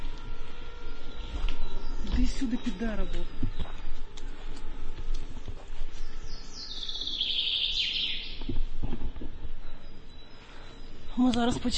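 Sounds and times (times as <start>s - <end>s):
drone flying overhead: 0.0s - 11.2s
speech: 2.3s - 3.7s, 11.2s - 11.7s.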